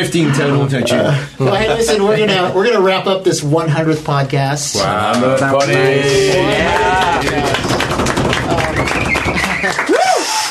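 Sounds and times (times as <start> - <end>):
speech: 0.0 - 7.7, 9.3 - 10.0
crowd, people clapping: 5.0 - 10.4.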